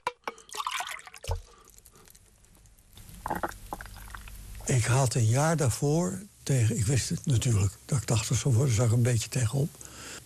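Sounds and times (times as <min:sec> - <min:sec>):
liquid pouring into a glass: 0:00.1 - 0:01.8, 0:03.2 - 0:04.4
speech: 0:04.7 - 0:10.2.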